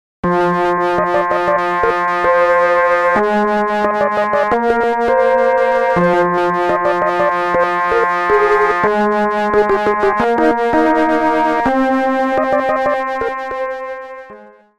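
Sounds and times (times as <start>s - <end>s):
synth: 0.2s - 14.6s.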